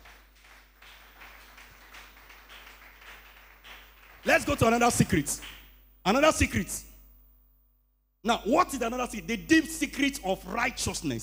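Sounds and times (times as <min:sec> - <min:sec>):
audience clapping hands: 0:00.0 - 0:05.8
speech: 0:04.2 - 0:06.9, 0:08.2 - 0:11.2.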